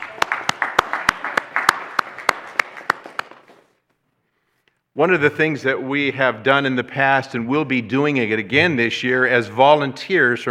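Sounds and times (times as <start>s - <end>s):
audience applause: 0.0s - 3.7s
speech: 5.0s - 10.4s.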